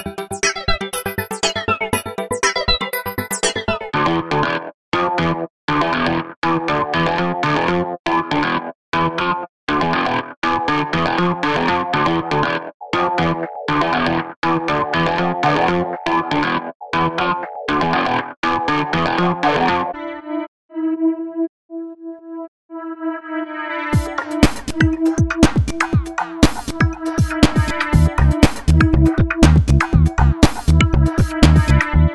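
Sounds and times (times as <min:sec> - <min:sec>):
electronic guitar grooves: 0:00.0 - 0:20.1, 0:23.9 - 0:32.1.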